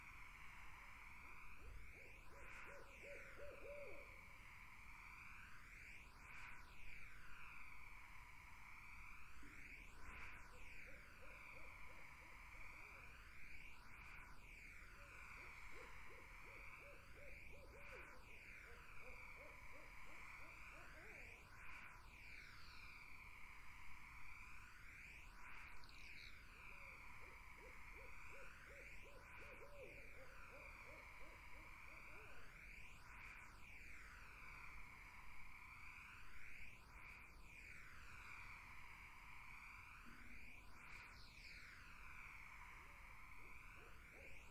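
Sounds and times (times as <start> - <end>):
insect chorus: 0.0 - 44.4
barred owls hooting: 1.6 - 4.2, 15.4 - 21.3, 27.1 - 32.4.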